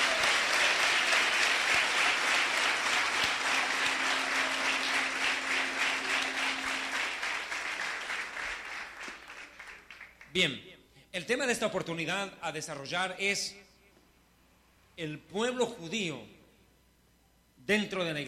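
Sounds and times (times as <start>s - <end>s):
audience applause: 0.0s - 10.3s
faint low hum: 0.0s - 18.2s
speech: 10.4s - 13.6s, 15.0s - 16.4s, 17.7s - 18.2s.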